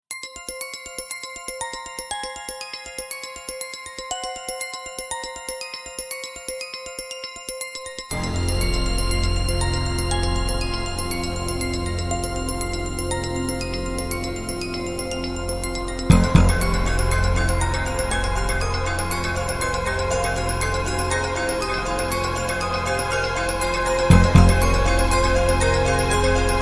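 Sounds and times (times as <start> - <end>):
suspense music: 8.1 - 26.5.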